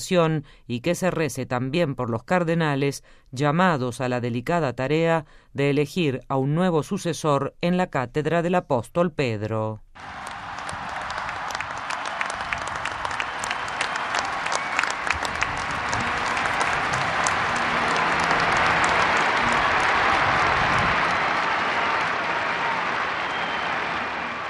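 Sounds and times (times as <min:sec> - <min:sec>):
speech: 0:00.0 - 0:10.4
hundreds of thousands of faithful and pilgrims applauding the Pope: 0:10.0 - 0:24.4.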